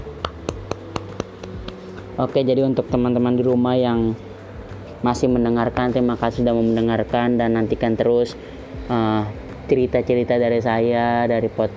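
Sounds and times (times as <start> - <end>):
single pair of hands clapping: 0.2 - 2.1
speech: 2.2 - 4.3, 5.0 - 11.7.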